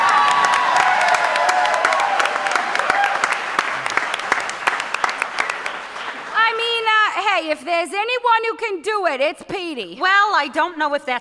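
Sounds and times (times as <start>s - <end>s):
audience clapping: 0.0s - 7.6s
speech: 7.6s - 11.1s.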